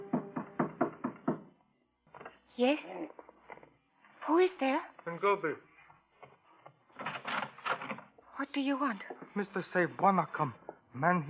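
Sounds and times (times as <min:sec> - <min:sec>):
soft hollow knocks on a door: 0:00.0 - 0:01.6
speech: 0:02.6 - 0:03.2, 0:04.3 - 0:05.7, 0:08.5 - 0:11.2.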